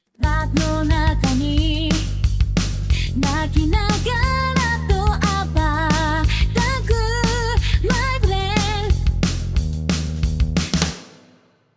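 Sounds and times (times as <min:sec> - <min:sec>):
bass: 0:00.2 - 0:11.0.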